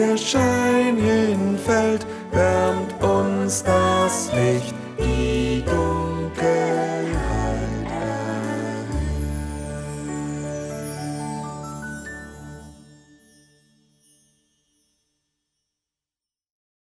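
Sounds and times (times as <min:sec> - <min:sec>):
bass: 0:00.0 - 0:13.1.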